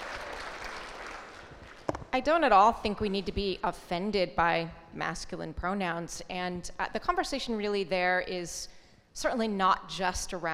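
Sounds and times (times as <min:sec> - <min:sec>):
audience applause: 0:00.0 - 0:01.9
speech: 0:02.2 - 0:10.5.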